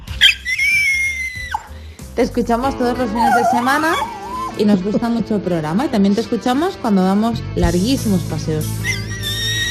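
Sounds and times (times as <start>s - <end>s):
dog howling in voice note: 0.2s - 1.7s, 3.0s - 4.6s, 8.9s - 9.6s
speech: 2.2s - 9.0s.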